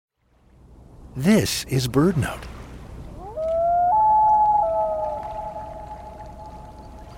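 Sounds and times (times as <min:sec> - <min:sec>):
speech: 0:01.2 - 0:02.5
common loon wailing call: 0:03.2 - 0:07.1.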